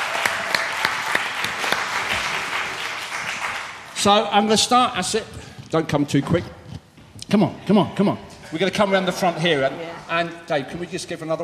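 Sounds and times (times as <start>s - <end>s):
audience applause: 0.0s - 4.0s
speech: 4.0s - 6.6s, 7.3s - 11.4s.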